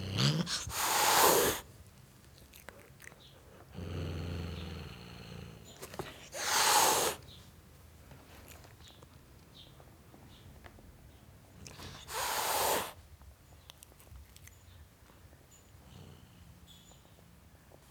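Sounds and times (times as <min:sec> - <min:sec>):
tom cat hissing at a dog: 0:00.2 - 0:01.7, 0:06.0 - 0:07.3, 0:11.7 - 0:13.0.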